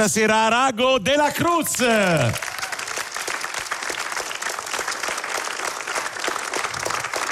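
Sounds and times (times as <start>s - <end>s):
speech: 0.0s - 2.5s
audience applause: 2.2s - 7.3s.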